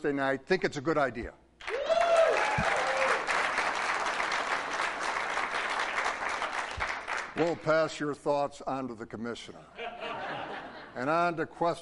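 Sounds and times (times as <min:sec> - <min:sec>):
speech: 0:00.0 - 0:01.4, 0:07.4 - 0:09.8, 0:11.0 - 0:11.7
crowd applauding: 0:01.6 - 0:07.4
cheers and whistles: 0:01.7 - 0:03.2
laughter: 0:09.8 - 0:11.0.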